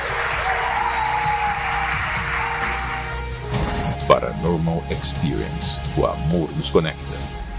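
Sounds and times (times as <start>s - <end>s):
crowd applause: 0.0s - 3.5s
speech: 4.1s - 7.4s.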